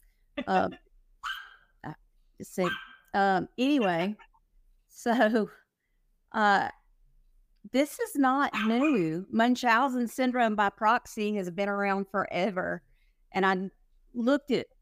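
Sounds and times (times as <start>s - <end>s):
speech: 0.5s - 0.8s, 1.8s - 4.3s, 4.9s - 5.6s, 6.3s - 6.8s, 7.6s - 14.7s
puppy barking: 1.2s - 1.6s, 2.6s - 3.0s, 8.6s - 9.0s.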